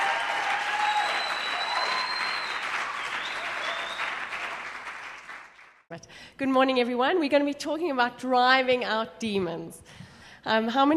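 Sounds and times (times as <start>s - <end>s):
audience round of applause: 0.0s - 5.8s
speech: 6.0s - 10.9s.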